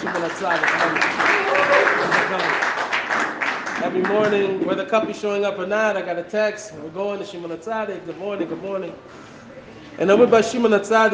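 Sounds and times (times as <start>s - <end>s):
speech: 0.0s - 2.8s, 3.8s - 9.3s, 10.0s - 11.1s
audience clapping: 0.0s - 4.6s.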